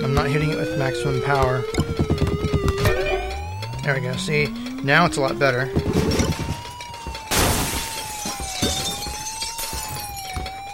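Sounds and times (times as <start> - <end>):
steady electronic tone humming: 0.0 - 7.3
speech: 0.2 - 1.9, 3.9 - 6.3
video game objects shattering: 5.9 - 10.5.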